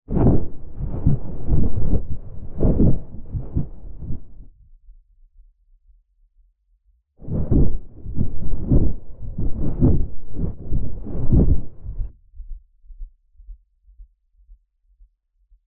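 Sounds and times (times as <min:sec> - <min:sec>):
thunder made by moving treated fabric: 0:00.0 - 0:04.5, 0:07.2 - 0:12.1.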